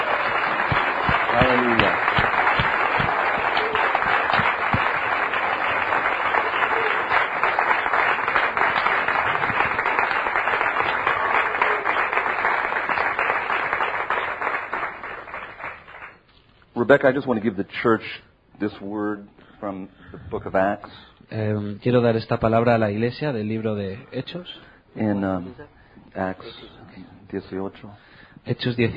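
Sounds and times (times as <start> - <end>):
audience applause: 0.0 - 16.2
speech: 1.4 - 2.4, 16.9 - 26.7, 27.3 - 28.9.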